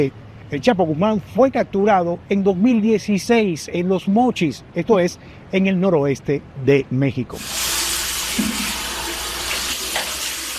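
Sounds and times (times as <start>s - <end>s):
speech: 0.0s - 7.6s
water running from a sink tap: 7.4s - 10.5s.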